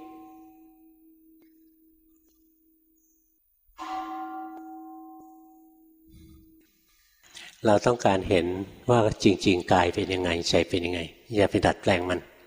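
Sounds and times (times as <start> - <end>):
meditation bell struck: 0.0 - 7.3
speech: 7.6 - 12.3.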